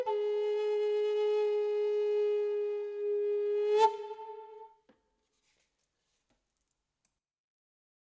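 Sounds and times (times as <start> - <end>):
simple flute note La: 0.0 - 4.7.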